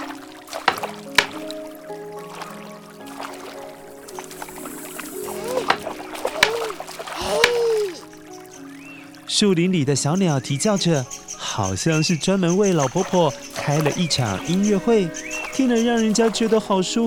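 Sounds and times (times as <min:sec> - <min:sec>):
bamboo paddle beating clothes while washing in a river: 0:00.0 - 0:01.6, 0:05.2 - 0:08.0
speech: 0:09.4 - 0:17.0.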